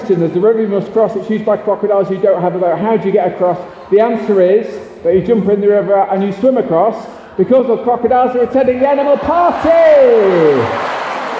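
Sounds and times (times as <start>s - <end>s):
speech: 0.1s - 10.8s
audience applause: 9.0s - 11.3s.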